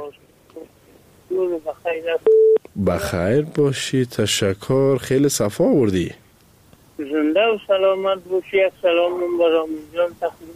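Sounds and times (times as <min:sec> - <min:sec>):
speech: 0:01.3 - 0:06.2, 0:07.1 - 0:10.5
telephone line tone as a caller is connected to a radio call-in show: 0:02.2 - 0:02.6.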